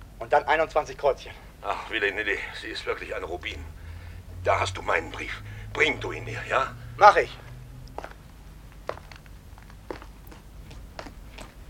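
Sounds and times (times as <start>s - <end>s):
speech: 0.2s - 3.8s, 4.4s - 7.4s
quick footsteps on pavement and up steps into a tavern: 7.4s - 11.6s.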